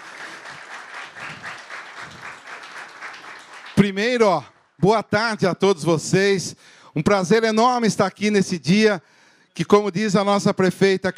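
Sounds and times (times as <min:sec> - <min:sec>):
audience applause: 0:00.0 - 0:04.4
speech: 0:03.8 - 0:11.1.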